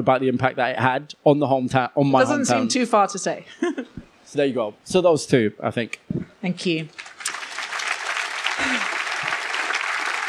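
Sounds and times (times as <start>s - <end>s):
speech: 0.0s - 7.1s
audience clapping: 6.9s - 10.2s.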